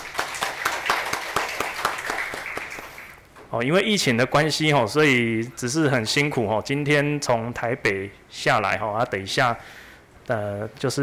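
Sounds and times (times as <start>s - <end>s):
audience applause: 0.0s - 3.2s
speech: 3.5s - 11.0s.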